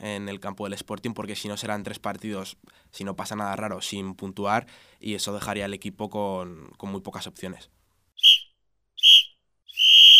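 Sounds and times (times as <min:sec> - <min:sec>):
speech: 0:00.0 - 0:08.3
referee's whistle blasts for the end of a football match: 0:08.2 - 0:10.1.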